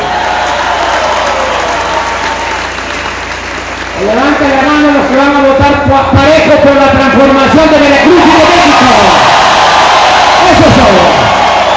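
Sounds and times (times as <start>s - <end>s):
audience applause: 0.0s - 5.6s, 8.0s - 11.7s
speech: 5.8s - 9.3s.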